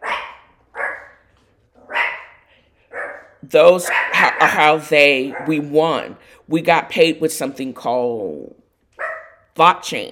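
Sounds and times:
dog barking: 0.0s - 1.2s, 1.8s - 5.7s, 9.0s - 9.5s
speech: 3.4s - 8.6s, 9.6s - 10.1s.

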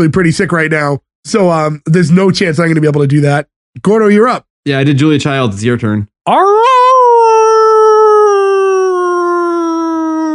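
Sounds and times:
speech: 0.0s - 6.8s
person imitating a dog's howl: 6.3s - 10.3s.

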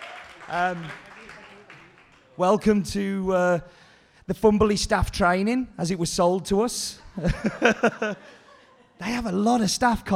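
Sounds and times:
round of applause: 0.0s - 2.4s
speech: 0.5s - 1.1s, 2.4s - 8.4s, 9.0s - 10.1s
laughter: 7.0s - 9.4s.

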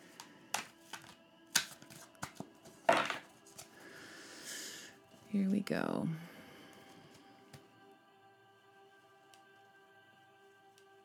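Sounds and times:
tarot card pulled from the deck, snapping and rustling: 0.1s - 3.8s
speech: 5.3s - 6.3s.

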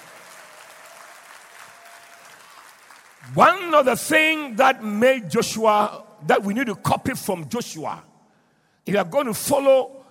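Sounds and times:
audience clapping hands: 0.0s - 3.9s
speech: 3.2s - 8.1s, 8.8s - 10.0s.

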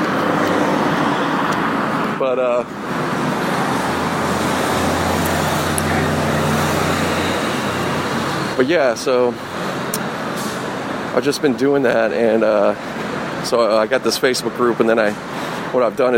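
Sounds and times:
motorcycles passing by on road: 0.0s - 11.1s
speech: 2.3s - 2.9s, 8.6s - 9.5s, 11.2s - 16.1s.

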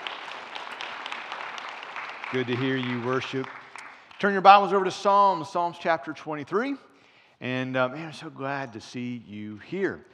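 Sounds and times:
audience applause: 0.0s - 4.5s
speech: 2.3s - 3.6s, 4.2s - 10.1s.

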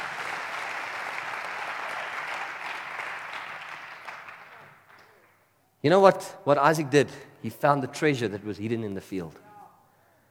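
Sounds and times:
audience applause: 0.0s - 5.4s
speech: 5.8s - 9.4s.

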